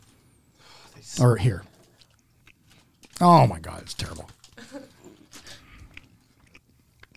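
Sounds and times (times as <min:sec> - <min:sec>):
speech: 0:01.0 - 0:01.7, 0:03.2 - 0:04.4
chewing Twizzlers licorice candy: 0:01.7 - 0:03.2, 0:05.2 - 0:07.1.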